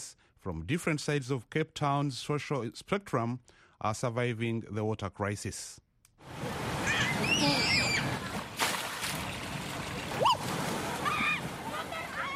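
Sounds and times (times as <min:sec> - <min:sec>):
speech: 0:00.0 - 0:06.4, 0:07.2 - 0:08.3
children splashing down water slides into pools: 0:06.2 - 0:12.3
children shrieking and excited voices: 0:06.7 - 0:08.4, 0:10.2 - 0:12.3.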